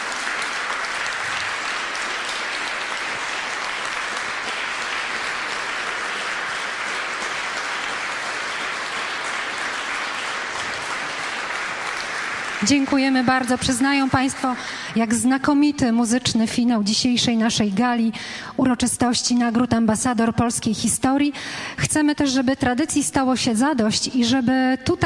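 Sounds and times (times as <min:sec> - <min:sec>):
audience applause: 0:00.0 - 0:14.9
speech: 0:12.6 - 0:25.0.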